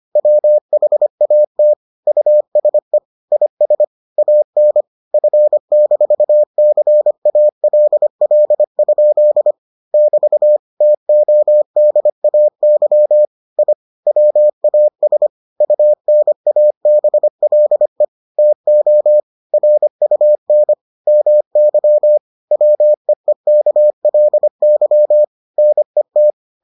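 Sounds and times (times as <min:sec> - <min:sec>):
morse code beeps: 0:00.2 - 0:26.6.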